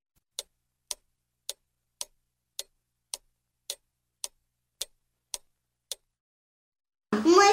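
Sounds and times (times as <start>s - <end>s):
large clock ticking: 0.2s - 6.2s.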